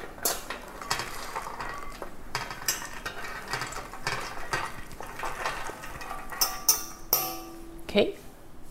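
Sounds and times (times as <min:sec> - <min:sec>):
stirring nuts into melted chocolate: 0:00.1 - 0:07.1
speech: 0:07.9 - 0:08.2.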